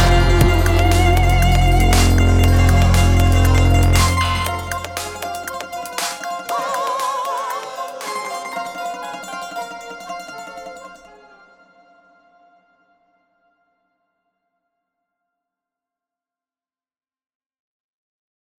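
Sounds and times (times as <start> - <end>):
pop theme music: 0.0 - 10.7.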